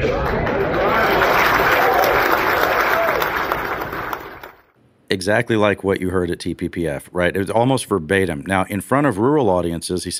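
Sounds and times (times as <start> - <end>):
crowd applauding in reaction to speech: 0.0 - 4.7
speech: 5.1 - 10.1.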